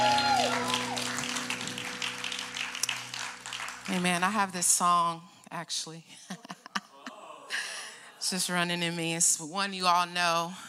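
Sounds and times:
church congregation applauding during a service: 0.0s - 4.5s
speech: 3.9s - 6.6s, 8.3s - 10.6s.

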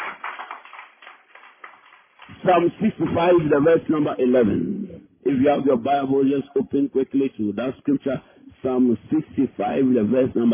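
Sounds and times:
audience clapping: 0.0s - 3.2s
speech: 2.4s - 10.5s.

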